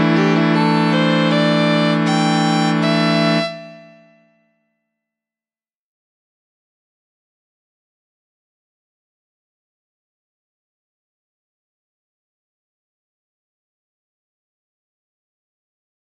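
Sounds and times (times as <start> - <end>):
hurdy gurdy player: 0.0 - 4.4.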